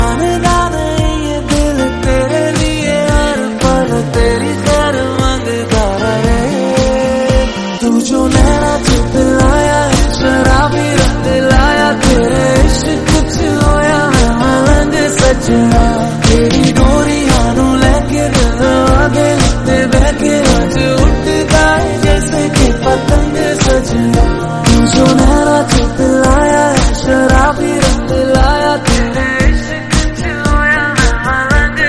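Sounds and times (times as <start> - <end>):
instrumental music: 0.0 - 31.8.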